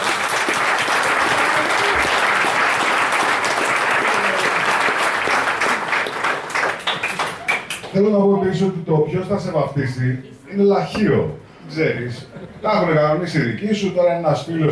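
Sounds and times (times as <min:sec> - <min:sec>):
audience applause: 0:00.0 - 0:07.9
speech: 0:08.0 - 0:14.7.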